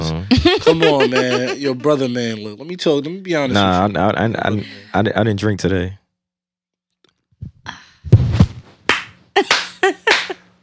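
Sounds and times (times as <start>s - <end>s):
laughter: 0.3s - 2.4s, 9.4s - 10.4s
speech: 0.5s - 6.0s
slow hand clapping: 8.9s - 10.6s.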